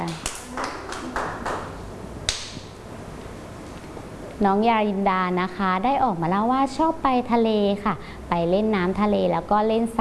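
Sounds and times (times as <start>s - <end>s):
children clapping hands: 0.0s - 2.6s
speech: 4.4s - 9.9s.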